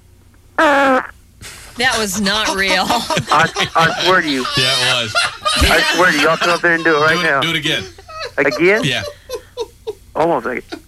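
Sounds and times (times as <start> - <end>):
fart made on command: 0.6 - 1.2
speech: 1.8 - 9.2, 10.2 - 10.8
laughter: 1.8 - 10.1.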